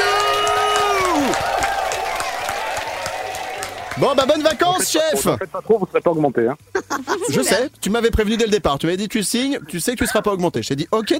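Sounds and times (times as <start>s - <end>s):
applause and cheering from studio audience: 0.0s - 5.2s
speech: 4.0s - 11.1s.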